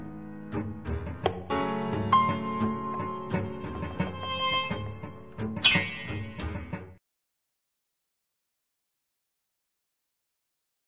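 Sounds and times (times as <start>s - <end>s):
tango music: 0.0s - 7.0s.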